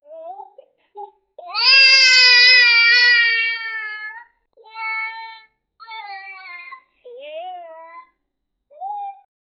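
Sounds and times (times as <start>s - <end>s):
child crying: 1.4s - 8.0s.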